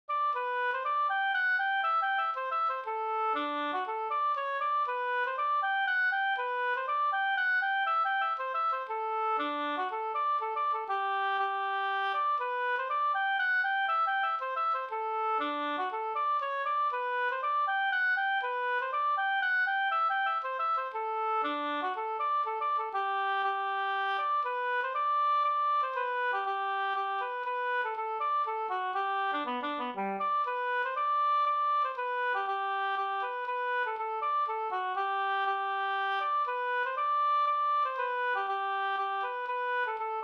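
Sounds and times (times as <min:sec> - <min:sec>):
polska dance tune: 0:00.1 - 0:40.2.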